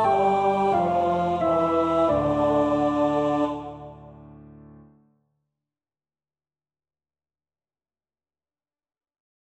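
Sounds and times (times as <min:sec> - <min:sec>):
soprano singing: 0:00.0 - 0:04.5.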